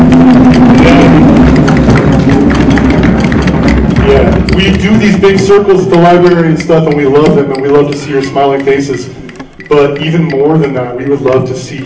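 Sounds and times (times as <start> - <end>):
audience applause: 0.0 - 6.4
speech: 5.2 - 11.8.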